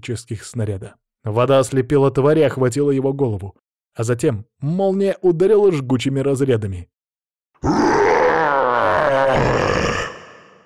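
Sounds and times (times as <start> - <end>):
speech: 0.0 - 7.0, 7.6 - 7.9
black-brown bear roaring: 7.6 - 10.6.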